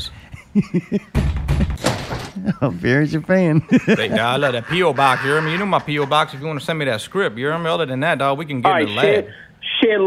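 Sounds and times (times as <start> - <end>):
speech: 0.0 - 1.4, 2.4 - 10.0
laughter: 0.4 - 1.1, 2.4 - 7.0
knock on the door: 1.1 - 2.2.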